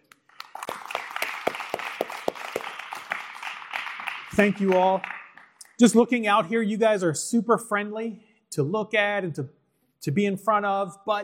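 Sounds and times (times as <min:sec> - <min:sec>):
audience applause: 0:00.0 - 0:05.7
speech: 0:04.4 - 0:05.1, 0:05.8 - 0:11.2.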